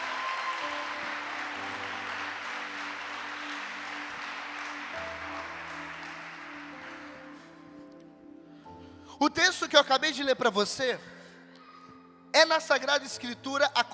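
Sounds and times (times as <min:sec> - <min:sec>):
audience applauding: 0:00.0 - 0:07.7
speech: 0:09.2 - 0:11.2, 0:12.4 - 0:13.9.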